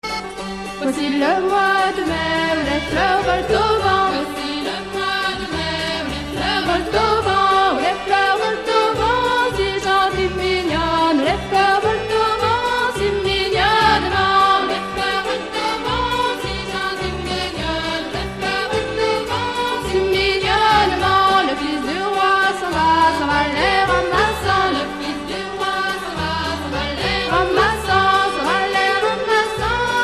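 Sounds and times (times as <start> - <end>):
Breton folk dance tune: 0.0 - 30.0.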